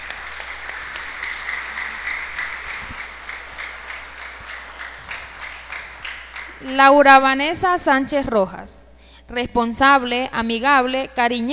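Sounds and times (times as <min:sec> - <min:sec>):
audience applause: 0:00.0 - 0:06.8
speech: 0:06.6 - 0:11.5.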